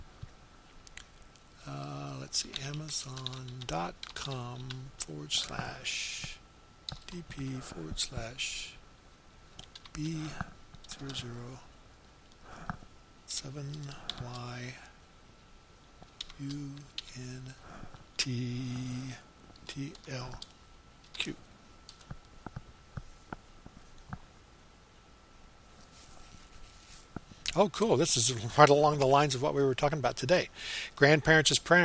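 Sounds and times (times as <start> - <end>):
speech: 2.3 - 6.4, 7.1 - 8.8, 10.0 - 11.7, 13.3 - 14.8, 16.4 - 17.6, 18.2 - 20.5, 21.2 - 21.4, 27.6 - 31.8
typing on a computer keyboard: 2.4 - 4.8, 6.9 - 7.2, 9.6 - 11.2.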